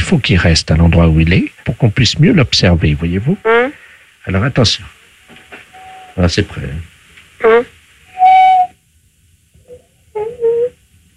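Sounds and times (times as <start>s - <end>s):
speech: 0.1s - 5.0s, 6.2s - 7.7s
parrot whistling: 5.7s - 6.2s, 7.4s - 8.8s, 9.6s - 10.8s.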